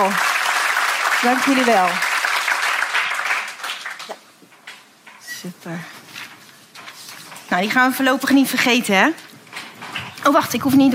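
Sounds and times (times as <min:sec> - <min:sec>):
speech: 0:00.0 - 0:00.3, 0:01.2 - 0:02.1, 0:05.4 - 0:06.0, 0:07.5 - 0:09.2, 0:10.3 - 0:10.9
audience applause: 0:00.0 - 0:04.3.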